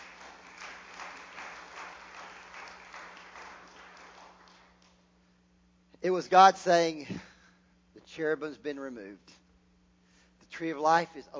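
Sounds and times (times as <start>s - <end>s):
audience clapping: 0.0s - 5.1s
speech: 6.0s - 7.3s, 8.2s - 9.4s, 10.5s - 11.3s.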